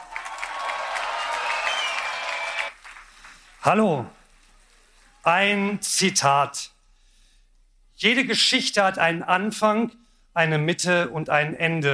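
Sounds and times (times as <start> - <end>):
audience applause: 0.0 - 3.8
speech: 3.6 - 4.2, 5.2 - 6.7, 8.0 - 11.9.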